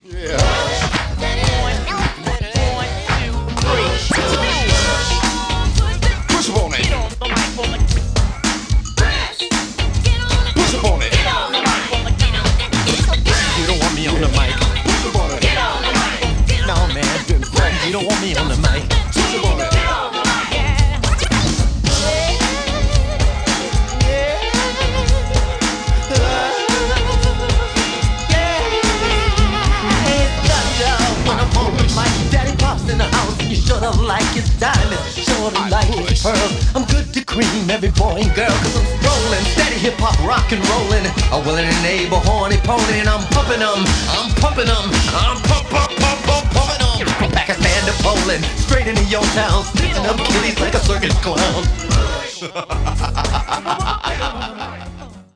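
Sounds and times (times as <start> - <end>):
vocals: 0.0 - 55.3
laughter: 49.9 - 55.3.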